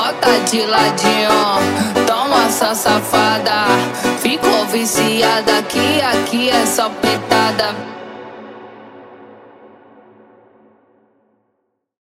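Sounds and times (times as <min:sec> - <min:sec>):
funk music: 0:00.0 - 0:08.5.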